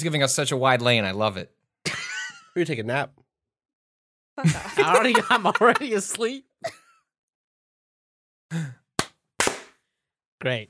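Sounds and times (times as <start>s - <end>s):
speech: 0.0s - 1.6s, 2.6s - 3.2s, 4.4s - 6.8s, 8.5s - 8.8s, 10.4s - 10.6s
laughter: 4.4s - 6.8s
sharp hand claps: 9.0s - 9.8s.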